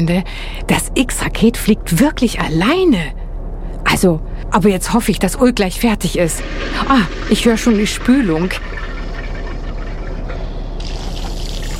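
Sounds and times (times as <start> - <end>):
speech: 0.0 - 3.2, 3.9 - 8.9
hands being washed under running tap: 6.3 - 11.7.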